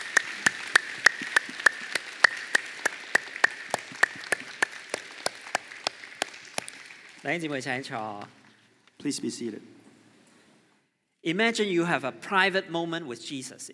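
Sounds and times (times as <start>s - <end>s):
audience applause: 0.0s - 8.2s
speech: 7.2s - 8.4s, 9.0s - 9.8s, 11.2s - 13.7s.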